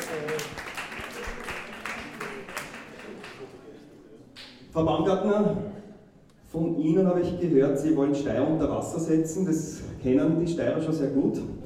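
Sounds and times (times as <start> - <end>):
audience applause: 0.0 - 3.7
speech: 4.8 - 5.8, 6.5 - 11.6.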